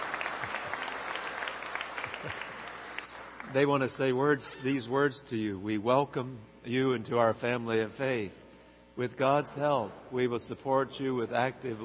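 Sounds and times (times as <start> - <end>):
audience applauding: 0.0 - 3.6
speech: 3.5 - 8.4, 9.0 - 11.8.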